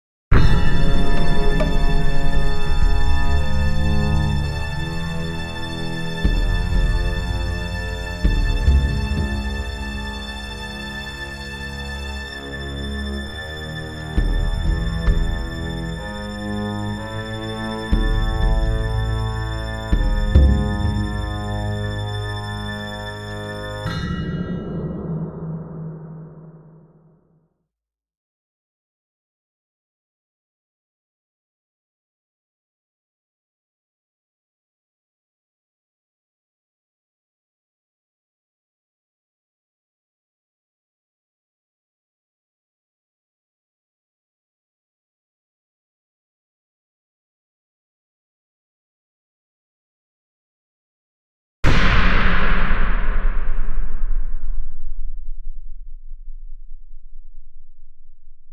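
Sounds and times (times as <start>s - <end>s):
orchestra hit: 0.3s - 27.1s, 51.6s - 57.0s.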